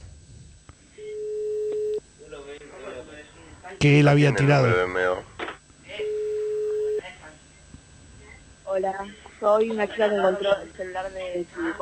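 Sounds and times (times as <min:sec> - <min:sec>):
telephone line tone when calling a discarded mobile phone: 0:01.0 - 0:02.0, 0:06.0 - 0:07.0
voices: 0:02.1 - 0:11.8
speech: 0:03.8 - 0:05.0, 0:08.8 - 0:11.8.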